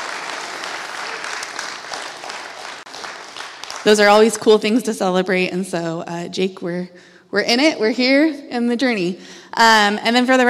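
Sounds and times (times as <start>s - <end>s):
audience applauding: 0.0s - 4.2s
speech: 3.8s - 10.4s.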